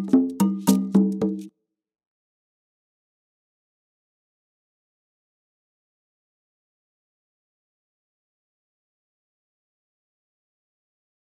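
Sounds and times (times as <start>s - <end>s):
Latin American rhythms at 110 bpm: 0.0s - 1.5s.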